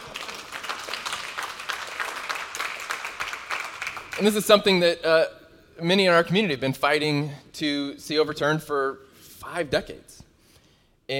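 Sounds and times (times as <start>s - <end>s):
applause: 0.0s - 4.6s
speech: 4.2s - 10.2s.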